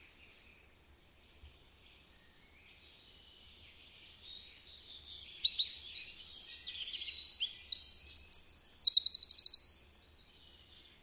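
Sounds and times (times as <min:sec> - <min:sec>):
Eurasian wren song: 0:00.0 - 0:11.0.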